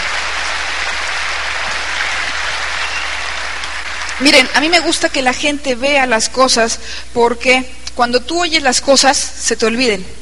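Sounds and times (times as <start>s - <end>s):
loud applause from audience: 0.0s - 4.6s
speech: 4.2s - 10.2s.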